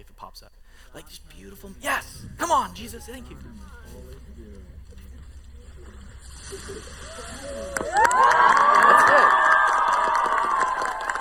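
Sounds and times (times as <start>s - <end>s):
speech: 0.0s - 4.6s, 6.5s - 8.5s
applause: 7.0s - 11.1s.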